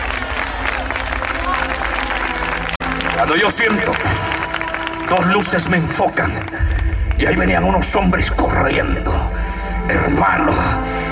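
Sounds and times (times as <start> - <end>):
crowd voices: 0.0 - 7.8
church congregation applauding: 0.0 - 8.1
speech: 3.2 - 4.4, 5.1 - 9.3, 9.9 - 11.0.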